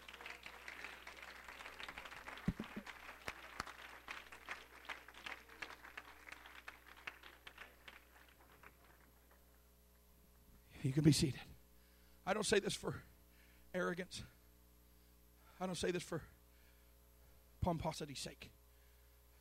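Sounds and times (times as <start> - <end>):
audience clapping hands: 0.0 - 9.6
speech: 10.8 - 11.5, 12.3 - 13.1, 13.8 - 14.4, 15.6 - 16.3, 17.6 - 18.6.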